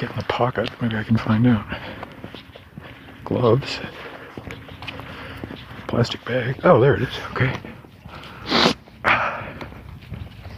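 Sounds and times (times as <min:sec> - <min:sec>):
speech: 0:00.0 - 0:02.5, 0:03.3 - 0:04.5, 0:06.0 - 0:07.7
breathy sniffs through the nose: 0:08.2 - 0:08.8.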